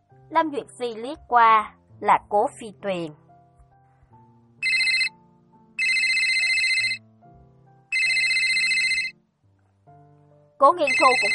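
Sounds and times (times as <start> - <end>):
speech: 0.3 - 3.2, 10.6 - 11.3
mobile phone ringtone with bright electronic bursts and low melodic tune: 4.6 - 5.2, 5.8 - 7.0, 7.9 - 9.2, 10.8 - 11.3.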